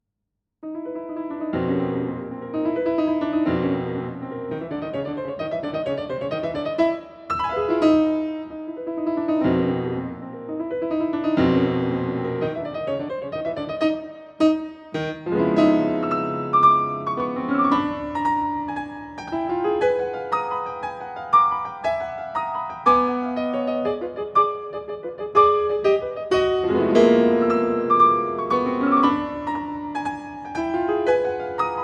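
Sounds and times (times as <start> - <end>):
piano arrangement: 0.6 - 31.8.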